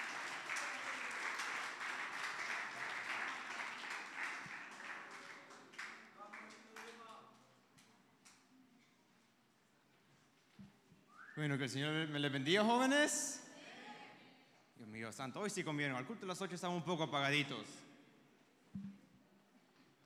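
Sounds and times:
audience applause: 0.0 - 7.1
speech: 11.4 - 13.4, 15.1 - 17.8.

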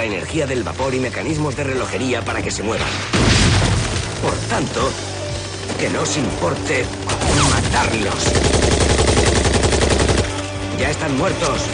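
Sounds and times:
speech: 0.0 - 5.2, 5.8 - 8.9, 10.8 - 11.7
machine gun fire: 2.9 - 10.5.

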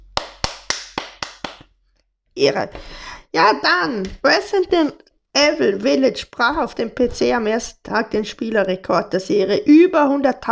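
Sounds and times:
hand clapping: 0.0 - 1.7
speech: 2.4 - 10.4.

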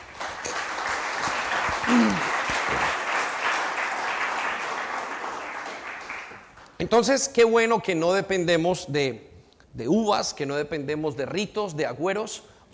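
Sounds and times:
audience applause: 0.0 - 6.6
speech: 1.9 - 2.3, 6.9 - 12.5.

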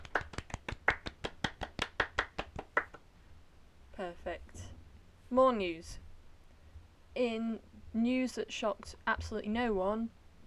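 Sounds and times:
people clapping: 0.0 - 3.0
speech: 4.0 - 4.7, 5.3 - 6.0, 7.2 - 10.2.

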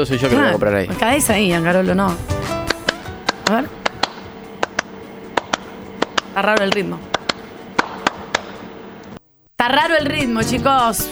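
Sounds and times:
speech: 0.0 - 2.6, 3.5 - 3.8, 6.4 - 7.1, 9.6 - 11.1
hand clapping: 0.0 - 8.8.

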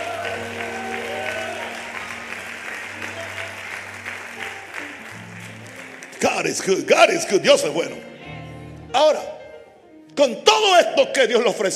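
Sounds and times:
audience applause: 0.0 - 6.9
speech: 6.4 - 8.1, 10.6 - 11.7.

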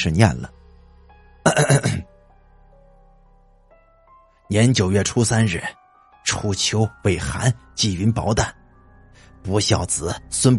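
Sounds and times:
speech: 0.0 - 0.6, 1.4 - 2.1, 4.5 - 8.6, 9.4 - 10.5
man kneeling on the ground clearing throat: 1.5 - 2.1.

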